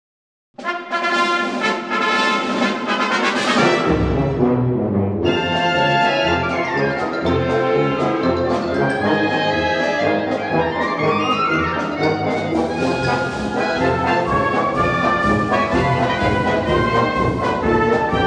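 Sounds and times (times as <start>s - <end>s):
march music: 0.6s - 18.2s.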